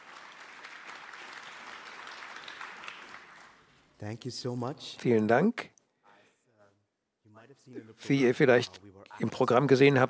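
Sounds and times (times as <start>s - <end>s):
audience applause: 0.0s - 3.7s
speech: 4.0s - 5.8s, 7.7s - 10.0s.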